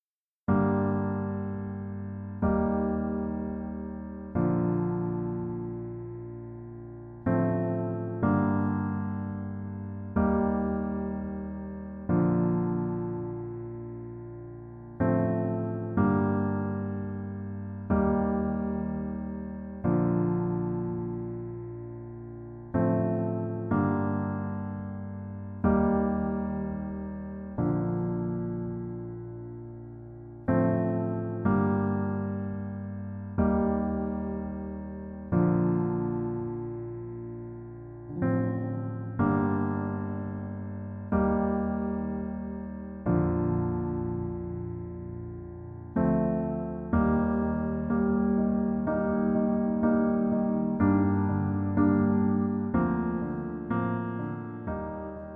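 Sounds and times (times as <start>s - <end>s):
piano version lowered by one key: 0.5s - 55.3s.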